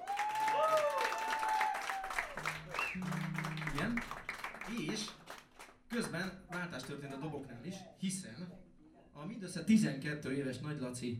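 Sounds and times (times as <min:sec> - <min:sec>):
audience applause: 0:00.0 - 0:07.2
speech: 0:03.8 - 0:05.2, 0:05.9 - 0:11.1.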